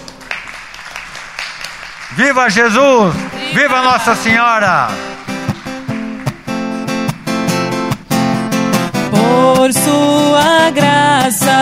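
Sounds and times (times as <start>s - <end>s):
audience applause: 0.0s - 8.7s
speech: 2.1s - 5.1s, 9.6s - 11.6s.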